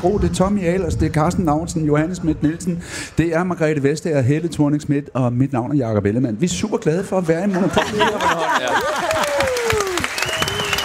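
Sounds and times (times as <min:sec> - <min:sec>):
speech: 0:00.0 - 0:09.5
laughter: 0:07.2 - 0:10.1
audience clapping: 0:08.2 - 0:10.8
voices whooping and calling out: 0:08.8 - 0:10.8.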